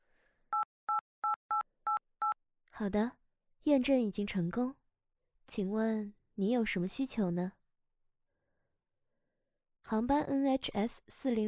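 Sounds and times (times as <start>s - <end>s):
telephone keypad tones entering a number: 0.6s - 2.4s
speech: 2.8s - 4.8s, 5.5s - 7.6s, 9.9s - 11.4s.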